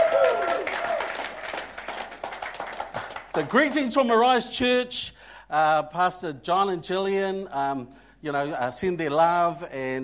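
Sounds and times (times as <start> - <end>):
audience applause: 0.0 - 4.3
speech: 3.4 - 10.0.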